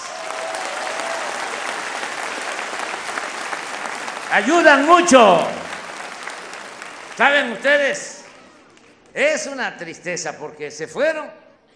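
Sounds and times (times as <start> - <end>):
audience applause: 0.0 - 9.1
speech: 4.3 - 5.6, 7.2 - 8.2, 9.2 - 11.4.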